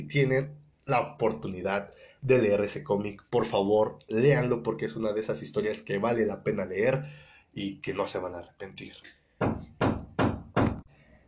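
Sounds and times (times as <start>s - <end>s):
speech: 0.0s - 9.6s
neighbors hammering nails: 9.4s - 10.9s.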